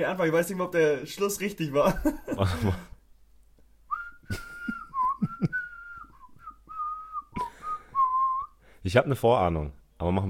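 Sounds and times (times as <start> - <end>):
speech: 0.0 - 2.9, 8.8 - 10.2
person whistling a Christmas carol melody: 3.9 - 8.6.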